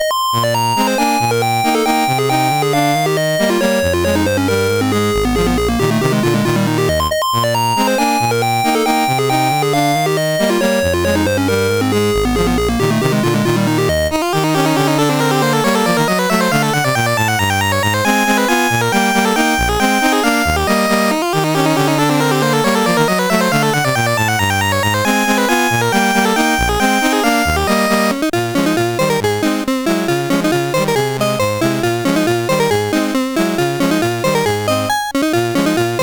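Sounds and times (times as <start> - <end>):
polka on CSG8580R5 sound chip: 0.0 - 36.0.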